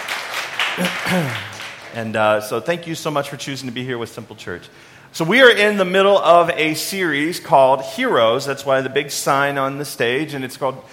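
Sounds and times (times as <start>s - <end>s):
audience applause: 0.0s - 2.0s
speech: 0.8s - 10.9s.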